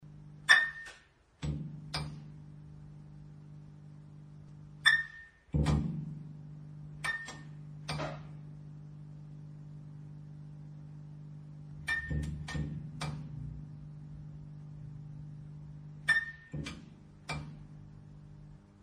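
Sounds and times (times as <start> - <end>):
fluorescent lamp clicking: 0.4 - 2.4, 4.5 - 8.5, 11.7 - 13.5, 15.9 - 17.8.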